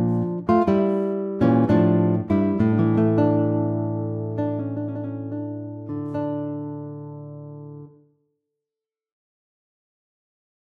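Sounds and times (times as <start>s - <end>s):
guitar chaconne: 0.0s - 8.1s.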